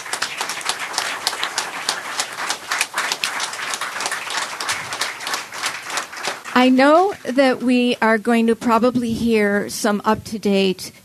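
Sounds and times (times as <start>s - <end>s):
audience applause: 0.0s - 7.1s
speech: 6.6s - 11.0s.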